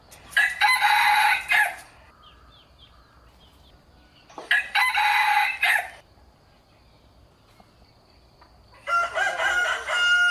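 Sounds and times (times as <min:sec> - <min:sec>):
rooster crowing: 0:00.4 - 0:01.8, 0:04.5 - 0:06.0, 0:08.8 - 0:10.2.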